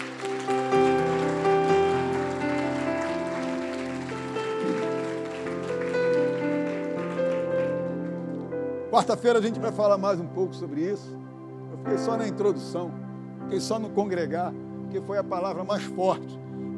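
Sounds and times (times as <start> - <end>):
audience applause: 0.0 - 8.5
sustained keyboard chords: 0.0 - 16.7
speech: 9.0 - 11.2, 11.8 - 16.7.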